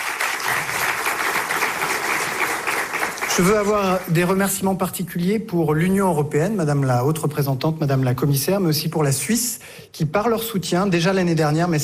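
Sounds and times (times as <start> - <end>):
sizable audience applause: 0.0 - 4.5
speech: 3.4 - 11.8.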